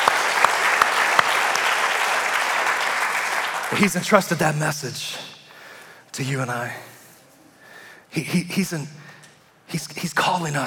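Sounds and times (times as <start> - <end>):
audience applause: 0.0 - 4.2
speech: 3.7 - 5.4, 6.2 - 6.9, 8.1 - 9.1, 9.7 - 10.6.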